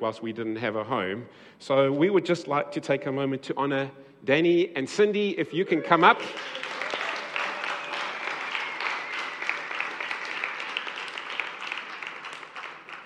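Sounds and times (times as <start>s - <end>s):
speech: 0.0s - 6.7s
crowd applause: 5.7s - 13.0s.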